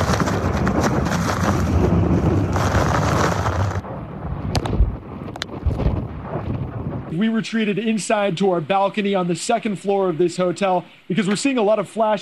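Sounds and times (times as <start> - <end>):
strong hurricane winds: 0.0 - 7.9
speech: 7.2 - 12.2.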